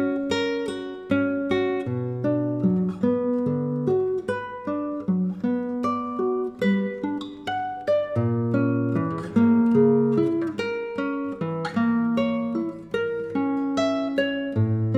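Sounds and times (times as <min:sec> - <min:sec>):
solo acoustic classical guitar playing a triad study: 0:00.0 - 0:14.9.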